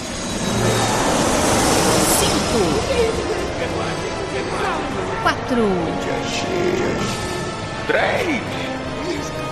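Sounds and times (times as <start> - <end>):
airplane taking off: 0.0 - 5.1
speech: 5.5 - 7.3, 7.9 - 9.4.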